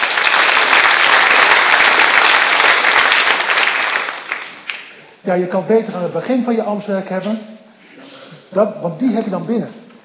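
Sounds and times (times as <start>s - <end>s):
audience applauding: 0.0s - 5.0s
speech: 5.2s - 7.6s, 8.5s - 9.8s.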